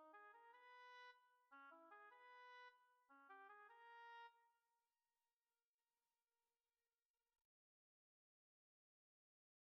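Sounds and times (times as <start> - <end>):
oboe: 0.0 - 4.4.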